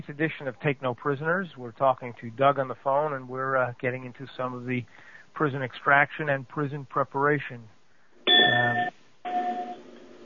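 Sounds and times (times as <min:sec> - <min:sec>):
speech: 0:00.1 - 0:07.8
bell-like electronic chime: 0:08.3 - 0:09.8.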